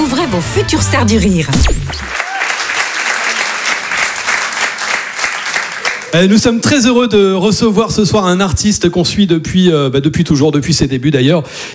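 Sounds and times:
speech: 0.3 - 2.2, 6.1 - 11.7
audience applause at a comedy club: 2.0 - 6.3.

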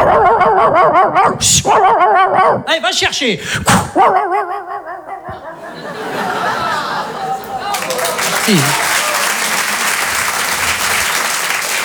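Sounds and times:
laughter: 0.0 - 2.7, 4.0 - 11.8
person imitating a dog yelp: 0.0 - 2.7, 3.7 - 5.6
speech: 0.8 - 4.5, 8.5 - 8.8.

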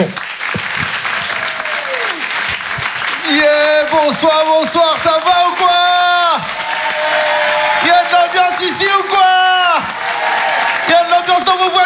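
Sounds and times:
cheering: 0.0 - 11.8
crowd applause: 0.0 - 11.8
speech: 4.1 - 5.6
faint whistle gliding downward: 6.4 - 11.2.

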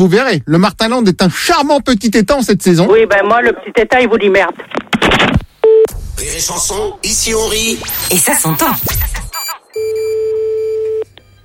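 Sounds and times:
speech: 0.0 - 5.4, 6.2 - 9.2
telephone tones as a radio show dials a listener: 9.8 - 11.4.

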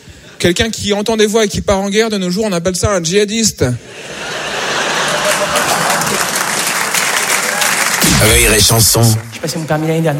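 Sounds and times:
speech: 0.4 - 4.3, 8.2 - 10.1
laughter: 3.9 - 6.4
audience applause: 4.8 - 8.0.

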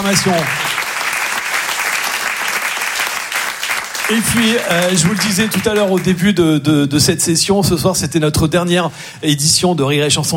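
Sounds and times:
speech: 0.0 - 0.7, 4.1 - 10.3
comedy club audience applause: 0.0 - 6.2.

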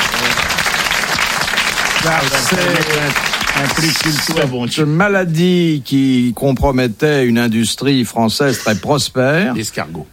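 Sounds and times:
audience applause: 0.0 - 4.6
speech: 2.0 - 10.1.

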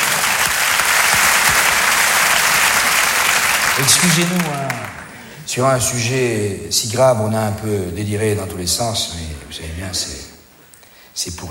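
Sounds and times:
audience applause: 0.0 - 5.3
speech: 3.8 - 4.9, 5.5 - 10.3, 11.2 - 11.4.

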